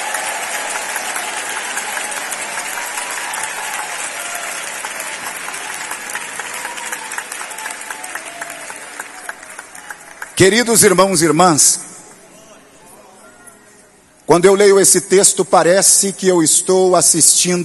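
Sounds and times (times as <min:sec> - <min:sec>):
audience clapping to glorify God: 0:00.0 - 0:11.2
speech: 0:10.4 - 0:11.8, 0:14.3 - 0:17.6.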